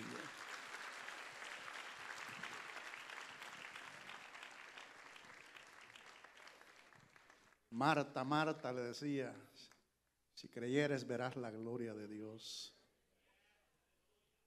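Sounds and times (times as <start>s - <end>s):
audience clapping hands: 0.0s - 7.7s
speech: 7.8s - 9.7s, 10.4s - 12.8s.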